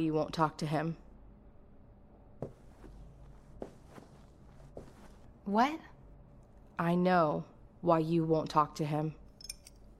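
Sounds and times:
speech: 0.0s - 1.0s, 5.5s - 5.9s, 6.8s - 9.2s
footsteps of a woman walking toward the stairs in an audio drama: 2.4s - 5.5s.

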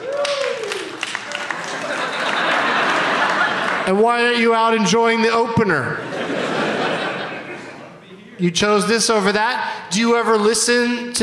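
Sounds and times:
crowd applauding: 0.0s - 4.4s
laughter: 1.2s - 4.1s, 6.0s - 8.1s
speech: 3.9s - 6.4s, 8.4s - 11.2s.

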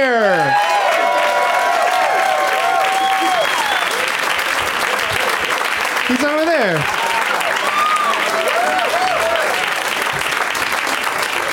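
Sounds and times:
audience applauding: 0.0s - 11.5s
cheers: 0.0s - 11.5s
shrill whistles: 2.9s - 4.2s.

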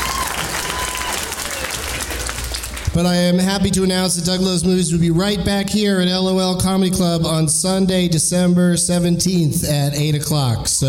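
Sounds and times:
audience clapping at a comedy club: 0.0s - 3.2s
speech: 3.0s - 10.8s.

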